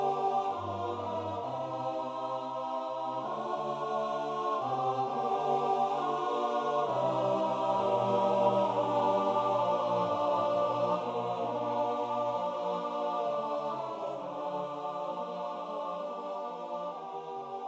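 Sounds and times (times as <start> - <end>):
liturgical music playback: 0.0 - 17.6.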